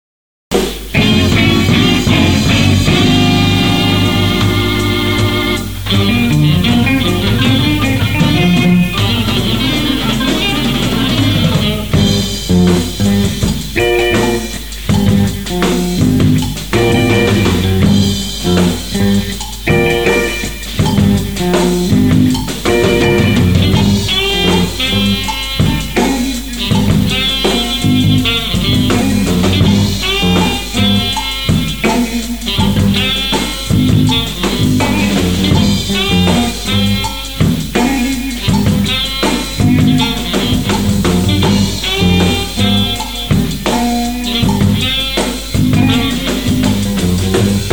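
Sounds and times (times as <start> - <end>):
funk music: 0.5 - 47.7
laughter: 6.4 - 11.9.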